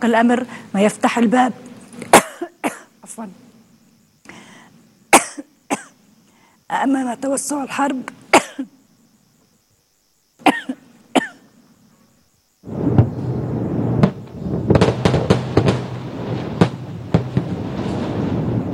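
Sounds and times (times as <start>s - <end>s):
speech: 0.0s - 2.1s, 3.1s - 3.4s, 6.7s - 8.8s
large military demolition explosion: 12.6s - 18.7s.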